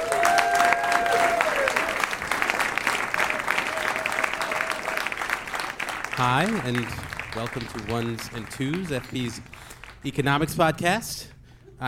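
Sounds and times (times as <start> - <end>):
audience applause for two economics show co-hosts: 0.0 - 10.4
speech: 6.2 - 11.8.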